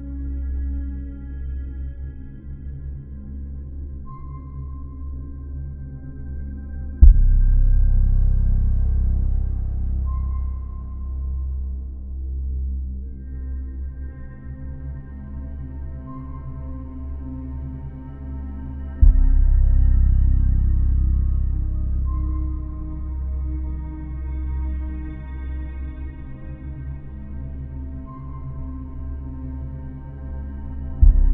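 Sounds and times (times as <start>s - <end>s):
sci-fi ambient music: 0.0s - 31.3s.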